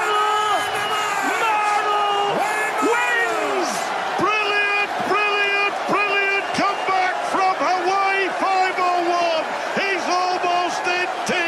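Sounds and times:
arena crowd cheering: 0.0 - 11.4.

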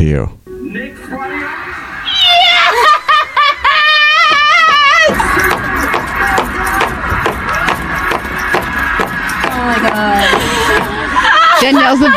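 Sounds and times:
speech: 0.0 - 0.8, 11.6 - 12.1
excited vocal squeals: 1.1 - 7.7, 10.1 - 12.1
high wavering laughter: 1.4 - 12.1
repeated foot stomping: 4.2 - 11.1.

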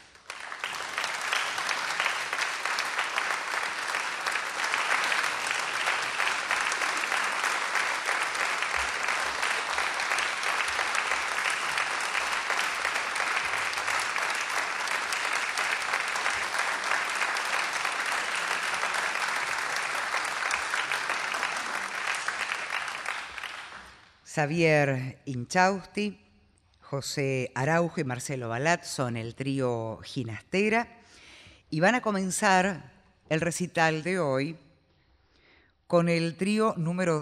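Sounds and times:
audience applause for arriving trio: 0.0 - 24.1
speech: 24.4 - 26.2, 26.9 - 31.0, 31.7 - 34.6, 35.9 - 37.2.

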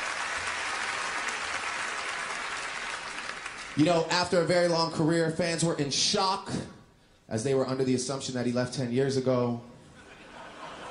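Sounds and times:
audience clapping during a comedy set: 0.0 - 4.4
speech: 3.8 - 9.7
laughter: 9.9 - 10.8.

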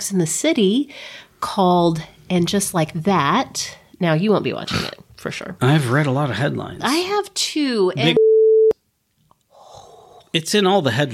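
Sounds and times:
speech: 0.0 - 8.3, 10.3 - 11.1
censor beep over spoiler: 8.0 - 8.8.

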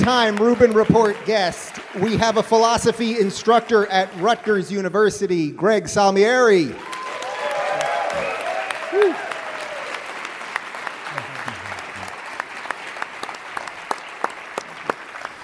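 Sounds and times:
audience clapping: 0.0 - 4.8, 6.7 - 15.4
speech: 0.0 - 6.9
vocal whoop: 6.8 - 10.0.

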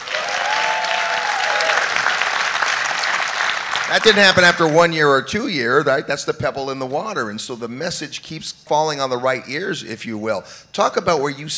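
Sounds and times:
audience applause: 0.0 - 4.9
speech: 3.9 - 11.5.

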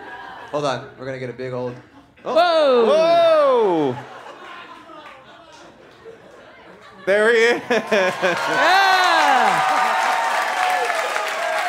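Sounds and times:
speech: 0.5 - 4.2, 7.1 - 9.0
laughter: 1.7 - 10.2
audience clapping: 4.2 - 6.9, 7.6 - 11.6.

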